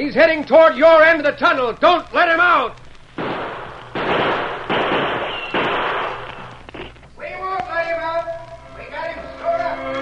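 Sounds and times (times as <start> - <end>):
speech: 0.0 - 2.8
gunshots in a tunnel: 3.2 - 7.0.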